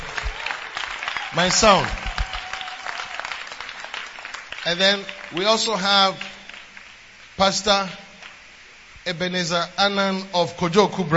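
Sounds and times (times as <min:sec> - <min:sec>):
audience clapping: 0:00.0 - 0:07.0, 0:08.2 - 0:08.4
speech: 0:01.3 - 0:02.0, 0:04.7 - 0:06.3, 0:07.4 - 0:08.0, 0:09.0 - 0:11.1.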